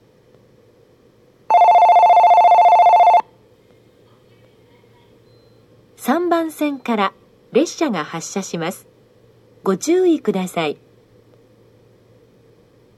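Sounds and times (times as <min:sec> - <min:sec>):
Biwajima station ambience: 0:01.4 - 0:10.9.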